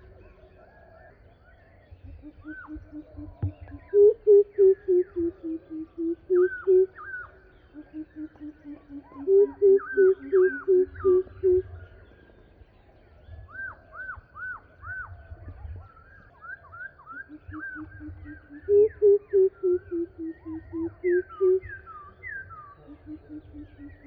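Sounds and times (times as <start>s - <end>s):
Greater Coucal calling: 2.2s - 11.7s, 17.1s - 24.0s.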